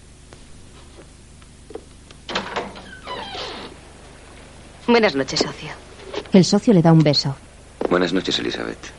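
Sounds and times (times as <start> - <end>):
door being opened: 2.3 - 3.8
speech: 4.9 - 8.9.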